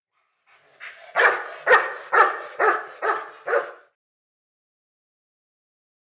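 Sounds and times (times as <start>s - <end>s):
dog barking: 0.8s - 3.9s.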